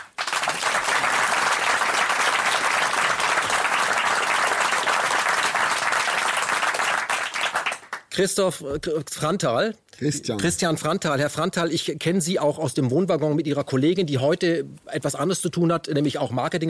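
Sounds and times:
audience applause: 0.0s - 8.1s
speech: 8.2s - 16.6s.

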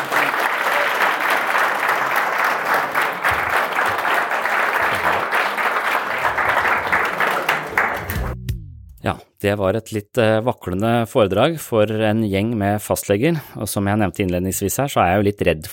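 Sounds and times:
audience applause: 0.0s - 8.4s
speech: 9.1s - 15.7s.

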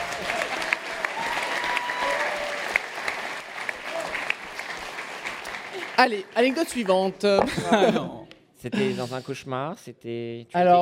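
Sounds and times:
group applause: 0.0s - 7.3s
speech: 6.0s - 10.8s
laughter: 7.4s - 8.2s.

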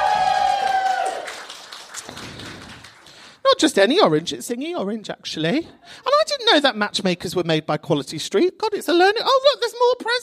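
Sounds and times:
round of applause: 0.0s - 3.4s
speech: 3.6s - 10.2s.

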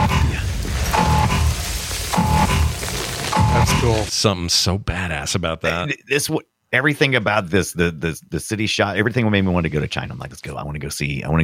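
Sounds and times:
film alarm blasts: 0.0s - 4.1s
loud dense rumbling film soundtrack: 0.0s - 4.1s
speech: 3.8s - 11.4s.

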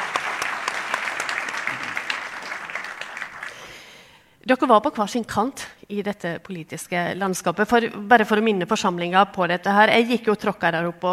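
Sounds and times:
audience clapping: 0.0s - 4.0s
speech: 4.5s - 11.1s.

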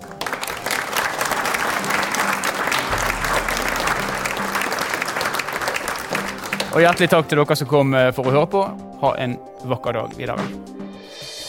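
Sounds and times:
audience applause: 0.0s - 7.2s
speech: 6.8s - 10.8s.

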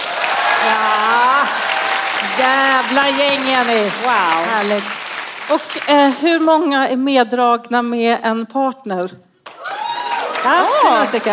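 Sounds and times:
live audience applause: 0.0s - 6.4s, 9.5s - 11.3s
speech: 2.3s - 9.3s, 10.4s - 11.3s.

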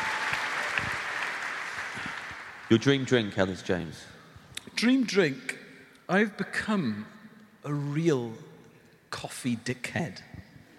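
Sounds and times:
round of applause: 0.0s - 3.2s
speech: 2.7s - 4.2s, 4.8s - 8.5s, 9.1s - 10.3s.

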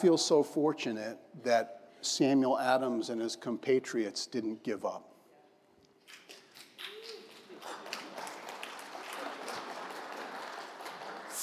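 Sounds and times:
speech: 0.0s - 5.1s
audience clapping: 6.1s - 11.4s.

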